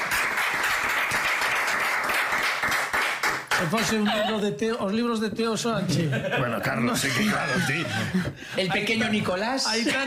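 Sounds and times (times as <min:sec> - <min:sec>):
audience applause: 0:00.0 - 0:03.9
laughter: 0:03.6 - 0:04.7, 0:05.8 - 0:10.0
speech: 0:03.6 - 0:10.0.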